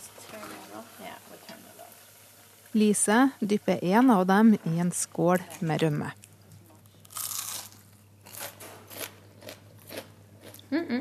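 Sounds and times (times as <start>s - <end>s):
potato cakes sizzling in a hot iron pot: 0.0s - 6.2s
speech: 2.8s - 6.2s.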